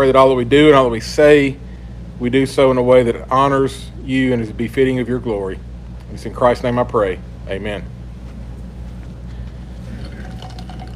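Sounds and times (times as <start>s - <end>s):
speech: 0.0s - 8.0s
person drinking water: 9.7s - 10.9s.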